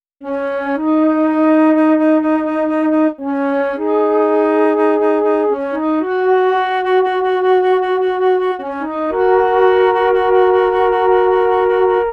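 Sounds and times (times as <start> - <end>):
flute: 0.2 - 12.1.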